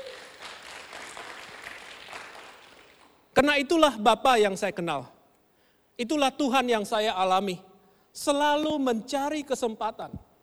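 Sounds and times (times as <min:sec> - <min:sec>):
audience applause: 0:00.0 - 0:03.1
speech: 0:03.4 - 0:05.1, 0:06.0 - 0:10.2.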